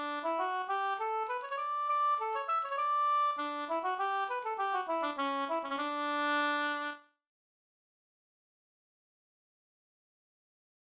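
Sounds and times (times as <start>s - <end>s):
polska dance tune: 0.0s - 6.6s.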